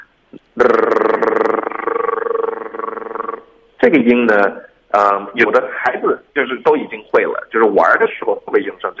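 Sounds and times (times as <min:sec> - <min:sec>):
speech: 0:00.3 - 0:00.9, 0:03.8 - 0:08.9
tongue trill made with steady, even airflow: 0:00.4 - 0:03.6.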